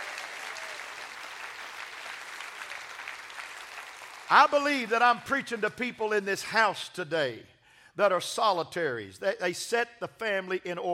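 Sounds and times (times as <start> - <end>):
large group clapping: 0.0 - 5.0
speech: 4.3 - 10.9.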